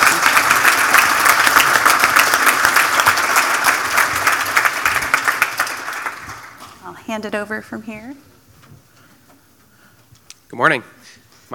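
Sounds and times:
audience applause for panelists: 0.0s - 6.8s
speech: 7.1s - 8.8s, 10.5s - 11.5s.

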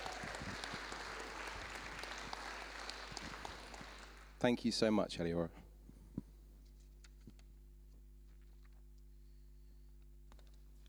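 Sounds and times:
audience applause: 0.0s - 4.5s
speech: 4.4s - 5.6s.

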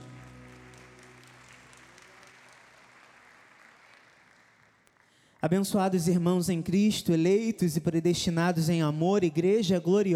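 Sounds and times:
audience applause: 0.0s - 5.2s
speech: 5.4s - 10.1s.

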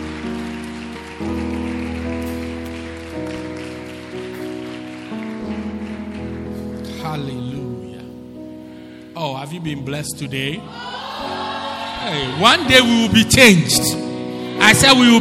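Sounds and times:
audience applause: 0.0s - 7.0s, 10.8s - 13.6s
speech: 7.1s - 7.7s, 9.2s - 11.4s, 12.0s - 14.0s, 14.6s - 15.1s.

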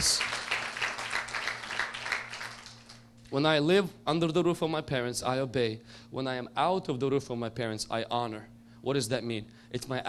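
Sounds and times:
audience applause: 0.0s - 3.0s
speech: 3.3s - 10.0s.

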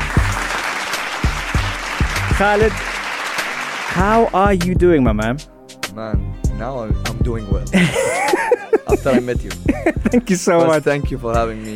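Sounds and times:
round of applause: 0.0s - 4.3s
speech: 2.4s - 3.0s, 3.9s - 11.7s
laughter: 7.8s - 10.4s.

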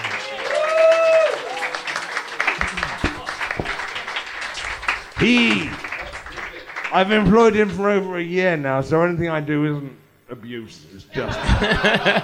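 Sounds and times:
audience applause: 0.0s - 7.8s
laughter: 2.4s - 6.9s, 11.1s - 12.2s
speech: 5.2s - 5.8s, 6.9s - 12.2s.

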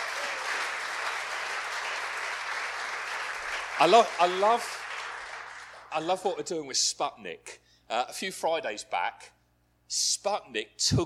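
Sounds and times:
audience applause: 0.0s - 6.1s
speech: 3.8s - 4.8s, 5.9s - 11.0s.

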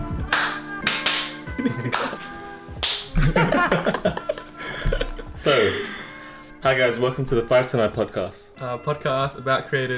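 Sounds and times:
hand claps: 0.2s - 3.4s
laughter: 1.5s - 2.3s, 3.1s - 5.8s
speech: 3.3s - 4.2s, 5.4s - 6.0s, 6.6s - 9.9s.

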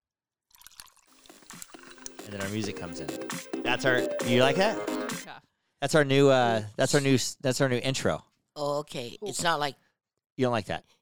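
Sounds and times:
ice cubes rattling inside a cocktail shaker: 0.6s - 3.3s
speech: 2.3s - 9.8s, 10.4s - 10.9s.

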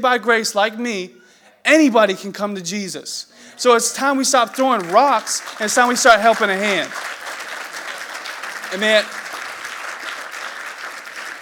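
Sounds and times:
speech: 0.0s - 7.2s, 8.7s - 9.2s
audience applause: 3.8s - 11.4s.

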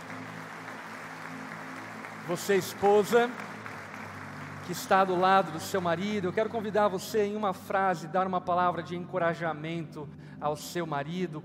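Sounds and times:
audience clapping: 0.0s - 7.2s
speech: 2.3s - 3.5s, 4.7s - 11.4s.

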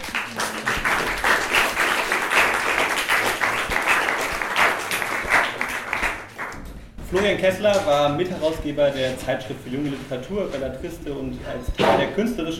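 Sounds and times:
audience applause: 0.0s - 6.6s
speech: 7.1s - 12.5s.

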